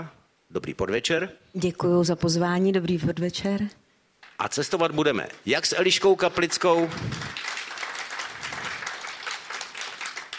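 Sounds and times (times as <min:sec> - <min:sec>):
speech: 0:00.0 - 0:07.4
audience applause at a travel festival in Pardubice: 0:05.6 - 0:10.3.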